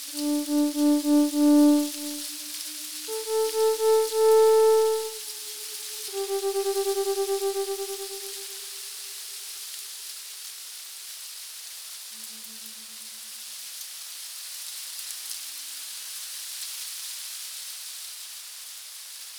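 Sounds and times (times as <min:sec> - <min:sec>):
ambient melodic electronic music: 0:00.0 - 0:02.4, 0:03.1 - 0:05.2, 0:06.1 - 0:08.6.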